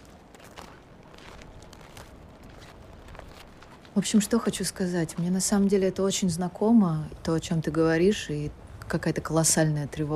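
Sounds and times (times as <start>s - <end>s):
footsteps crunching on snow: 0.0s - 5.3s
speech: 4.0s - 10.1s.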